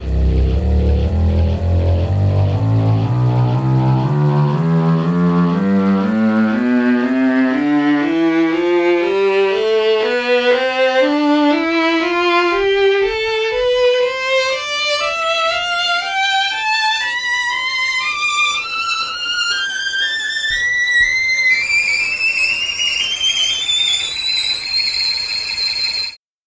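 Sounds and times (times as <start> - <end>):
violin playing a scale: 0.0 - 26.2.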